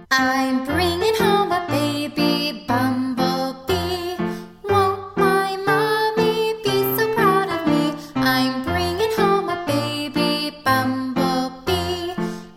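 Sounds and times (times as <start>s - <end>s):
vocals: 0.1s - 12.5s.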